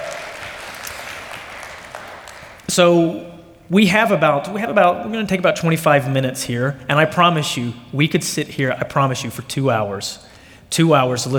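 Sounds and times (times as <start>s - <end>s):
crowd applauding: 0.0s - 3.6s
speech: 2.7s - 11.3s.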